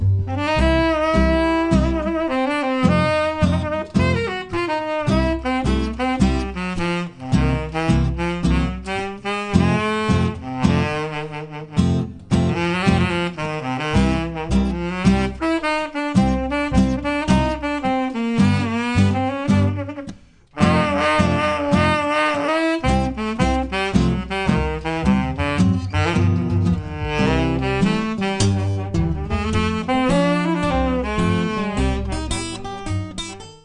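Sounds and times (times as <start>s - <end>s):
saxophone: 0.2s - 33.4s.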